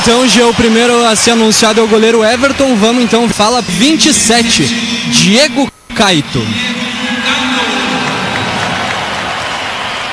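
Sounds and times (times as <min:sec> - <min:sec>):
stadium crowd applauding announced player: 0:00.0 - 0:04.6, 0:07.0 - 0:10.1
speech: 0:00.0 - 0:06.8.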